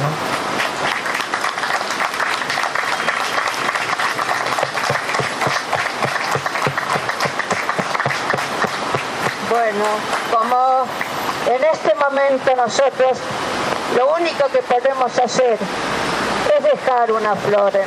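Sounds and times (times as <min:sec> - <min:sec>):
applause: 0:00.0 - 0:11.4
speech: 0:11.5 - 0:15.9, 0:16.7 - 0:17.8.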